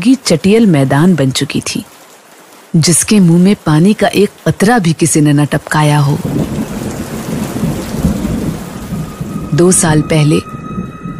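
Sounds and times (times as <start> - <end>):
speech: 0.0 - 1.9, 2.7 - 6.5, 9.6 - 10.6
heavy rain pouring: 0.0 - 11.1
thunder: 6.2 - 11.1.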